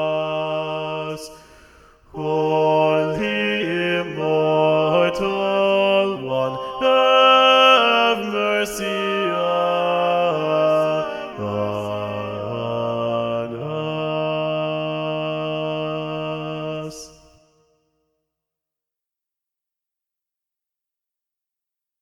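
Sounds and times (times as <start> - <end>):
SATB choir rehearsal track singing with bass voices predominant: 0.0 - 1.5, 2.1 - 17.3.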